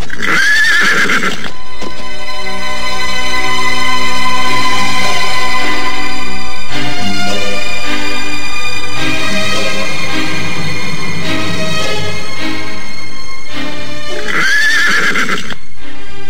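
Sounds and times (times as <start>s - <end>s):
horse whinnying: 0.0s - 1.5s, 14.2s - 15.6s
sustained tonal backdrop: 0.9s - 16.2s.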